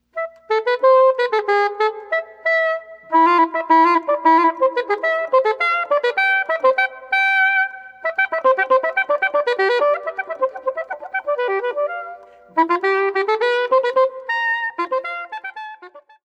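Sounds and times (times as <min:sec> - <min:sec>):
flute: 0:00.2 - 0:16.2.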